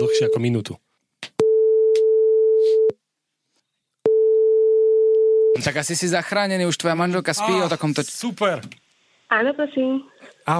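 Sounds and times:
speech: 0:00.1 - 0:00.9, 0:05.6 - 0:10.5
phone line ringing tone: 0:01.4 - 0:02.9, 0:04.1 - 0:05.6.

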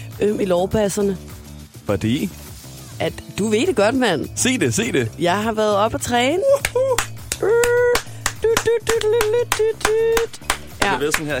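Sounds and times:
speech: 0:00.2 - 0:01.3, 0:01.9 - 0:02.4, 0:03.0 - 0:07.7, 0:08.8 - 0:11.3
hand clapping: 0:06.5 - 0:11.3.

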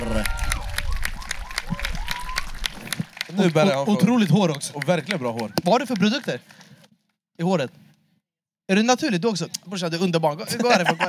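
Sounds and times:
audience applause: 0:00.0 - 0:06.6
speech: 0:03.4 - 0:06.6, 0:07.4 - 0:07.8, 0:08.7 - 0:11.0
laughter: 0:10.4 - 0:11.0.

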